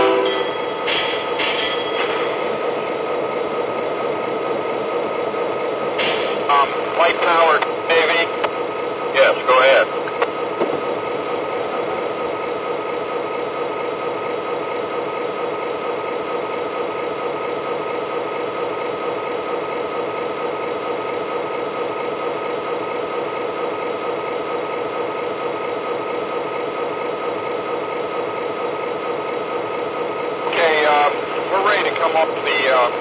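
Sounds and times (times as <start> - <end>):
SD40-2 diesel locomotive: 0.0 - 32.9.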